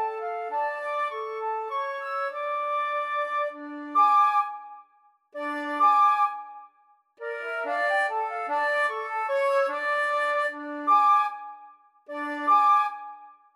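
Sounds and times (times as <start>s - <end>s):
flute duet: 0.0s - 13.5s.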